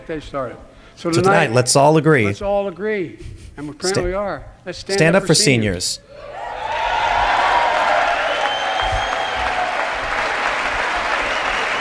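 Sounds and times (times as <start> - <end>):
speech: 0.1 - 6.4
audience applause in a chamber: 6.3 - 11.8.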